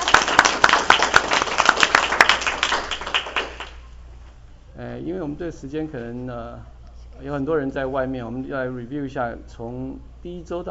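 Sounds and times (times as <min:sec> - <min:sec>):
group clapping: 0:00.0 - 0:03.9
speech: 0:05.0 - 0:10.7.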